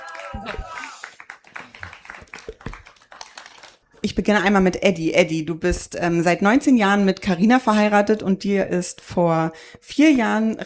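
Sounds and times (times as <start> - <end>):
audience applause: 0.0 - 3.9
speech: 4.1 - 10.6.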